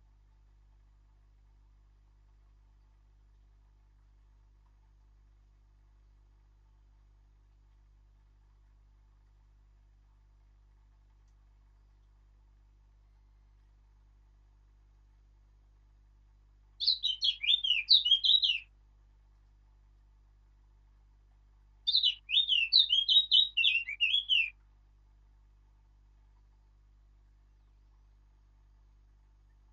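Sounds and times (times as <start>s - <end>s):
Eurasian blackcap warbling song: 16.8s - 18.7s, 21.9s - 24.6s.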